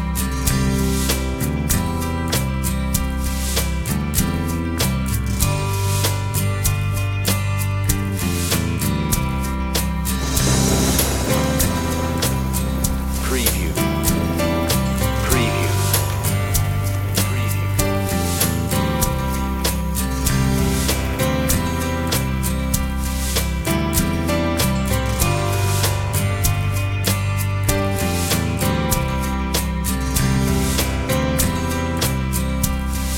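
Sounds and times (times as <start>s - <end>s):
underscore music: 0.0s - 33.1s.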